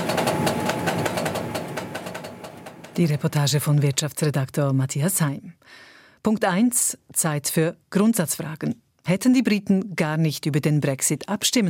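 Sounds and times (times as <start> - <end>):
printing machine turning a paper roll into colour A4 documents: 0.0 - 3.7
speech: 3.0 - 11.6.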